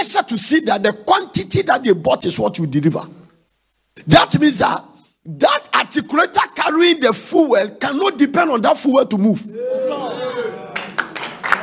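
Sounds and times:
speech: 0.0 - 3.2, 4.0 - 10.6
audience clapping hands: 10.6 - 11.6.

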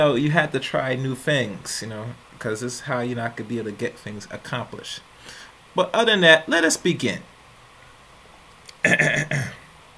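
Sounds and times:
speech: 0.0 - 7.3, 8.8 - 9.6
throat clearing: 8.8 - 9.6.

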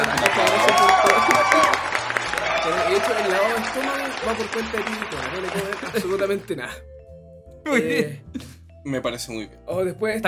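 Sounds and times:
crowd clapping and cheering: 0.0 - 6.5
laughter: 0.0 - 6.5
speech: 3.7 - 6.9, 7.6 - 10.2.

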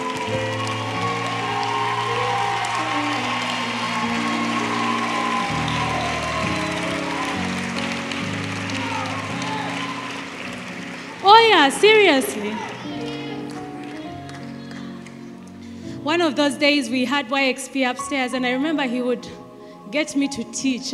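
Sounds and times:
audience clapping: 0.0 - 15.6
speech: 11.6 - 12.6, 16.1 - 20.9.

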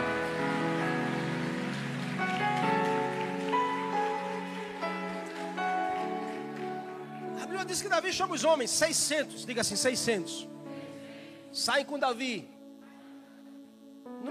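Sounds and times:
audience applauding: 0.0 - 9.0
speech: 7.6 - 10.6, 11.6 - 12.6.

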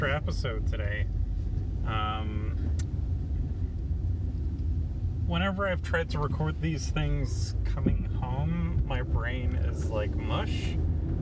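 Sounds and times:
speech: 0.0 - 1.2, 1.8 - 2.9, 5.3 - 11.2
car engine and road rumble inside a car driving home: 0.0 - 11.2.

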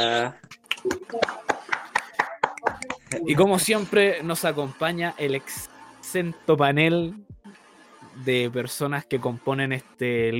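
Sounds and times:
speech: 0.0 - 1.5, 3.1 - 7.3, 8.2 - 10.3
hand claps: 0.4 - 3.2.

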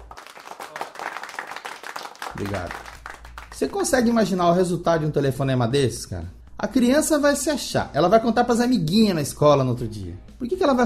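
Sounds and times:
applause: 0.0 - 3.9
speech: 2.4 - 2.9, 3.6 - 10.8.

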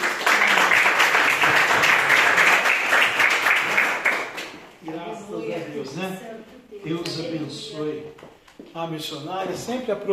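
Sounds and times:
applause: 0.0 - 4.8
speech: 8.8 - 10.1.

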